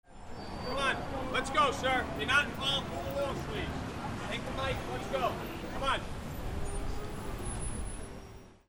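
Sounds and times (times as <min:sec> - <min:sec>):
people: 0:00.2 - 0:08.4.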